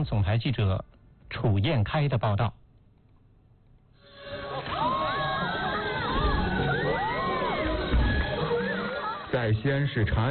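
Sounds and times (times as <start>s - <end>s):
speech: 0.0s - 2.6s, 9.4s - 10.2s
audience cheering and shouting bravo at Qinqiang opera performance: 4.2s - 10.2s.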